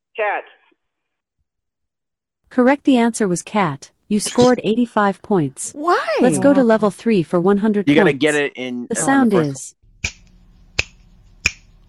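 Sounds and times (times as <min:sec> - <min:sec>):
speech: 0:00.2 - 0:00.7, 0:02.5 - 0:09.8
fingers snapping: 0:10.0 - 0:11.7.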